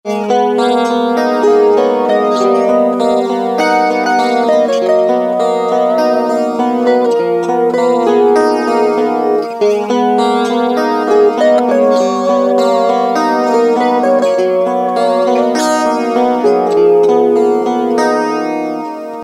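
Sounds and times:
guitar: 0.0s - 19.2s.

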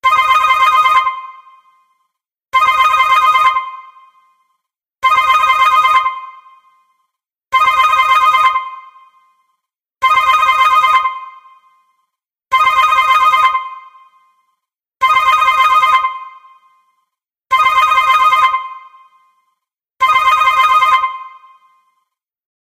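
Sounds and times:
synth ring tone: 0.1s - 22.2s.

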